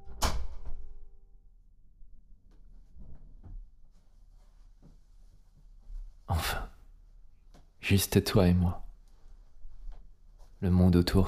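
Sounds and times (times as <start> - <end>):
door being closed: 0.0 - 1.0
speech: 7.9 - 8.8, 10.6 - 11.2.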